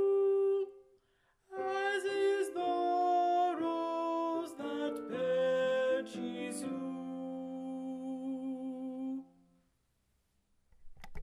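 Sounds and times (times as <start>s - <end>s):
alto voice singing: 0.0s - 0.8s, 1.5s - 9.4s.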